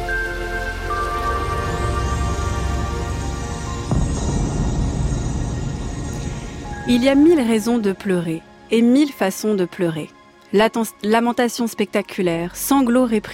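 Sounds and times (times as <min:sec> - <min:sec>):
steady rain pouring: 0:00.9 - 0:07.9
speech: 0:06.9 - 0:13.3.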